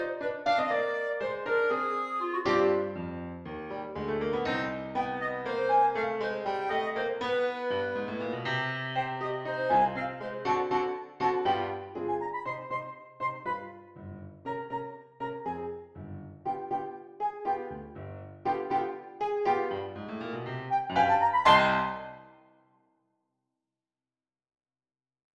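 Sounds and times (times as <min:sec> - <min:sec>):
swing and tango music: 0:00.0 - 0:13.9, 0:16.5 - 0:17.8, 0:18.5 - 0:22.3.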